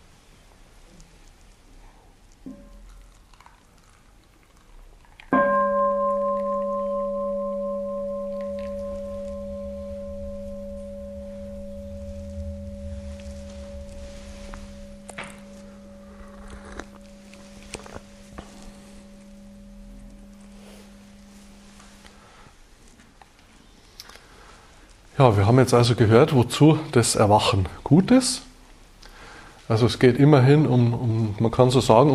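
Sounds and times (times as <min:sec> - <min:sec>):
bell ringing: 0:05.4 - 0:22.0
speech: 0:25.2 - 0:28.5, 0:29.7 - 0:32.1.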